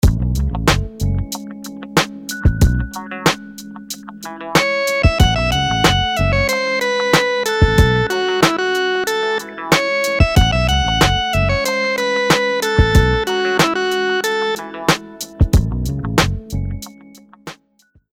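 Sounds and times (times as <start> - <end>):
dotted eighth rhythms: 0.0 - 17.5.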